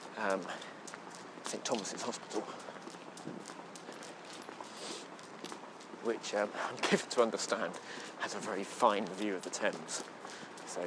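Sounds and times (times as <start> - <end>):
footsteps of people walking along a London street near St. Thomas's Hospital: 0.0 - 10.8
hiss: 0.0 - 10.8
speech: 0.2 - 0.8, 1.5 - 3.6, 6.0 - 10.2.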